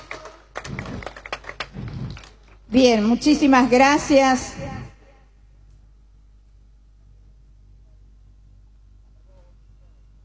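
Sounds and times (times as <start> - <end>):
scattered audience hand claps: 0.0 - 2.7
low steady hum: 0.0 - 10.2
speech: 2.7 - 4.7.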